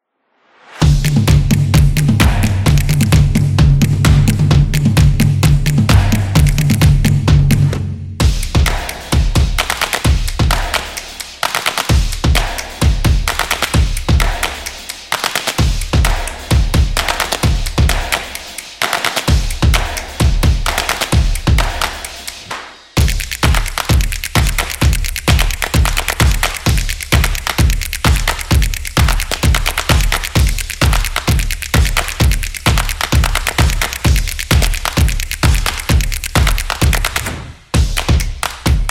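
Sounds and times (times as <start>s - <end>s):
kinetic percussive music: 0.8s - 38.8s.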